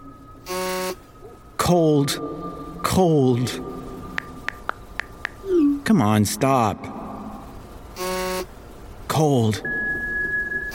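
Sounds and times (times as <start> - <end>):
phone buzzing: 0.0 - 1.2, 7.9 - 8.6, 9.7 - 10.7
speech: 1.7 - 3.8, 5.9 - 7.0, 9.2 - 9.7.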